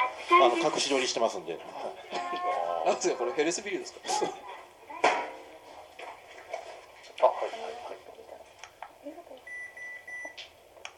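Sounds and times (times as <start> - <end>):
noise: 0.0 - 10.9
speech: 0.4 - 4.5
temperature-check thermometer beep at a hospital reception: 9.4 - 10.4.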